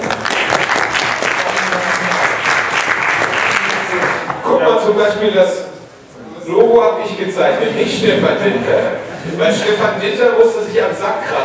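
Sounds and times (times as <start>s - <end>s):
crowd applause: 0.0s - 4.4s
speech: 5.0s - 5.6s, 6.5s - 11.4s.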